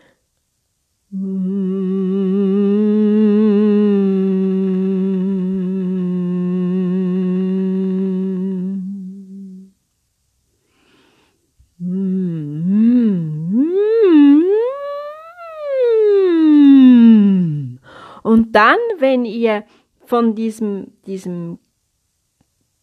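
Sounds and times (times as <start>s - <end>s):
person humming relaxed on own pitch: 1.1s - 9.8s, 11.7s - 18.0s
speech: 18.6s - 21.6s.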